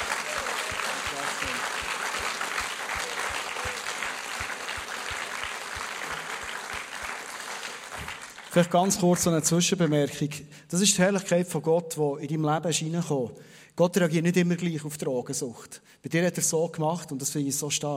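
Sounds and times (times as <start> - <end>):
audience applause: 0.0 - 9.0
speech: 8.6 - 17.9.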